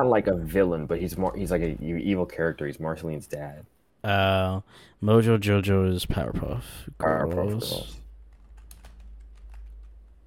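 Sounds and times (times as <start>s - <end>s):
speech: 0.0s - 8.0s
faint typing on a computer keyboard: 8.2s - 10.2s.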